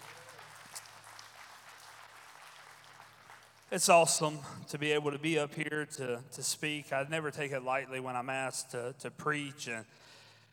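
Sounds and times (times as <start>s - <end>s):
audience hand clapping applause: 0.0s - 4.0s
speech: 3.7s - 10.2s.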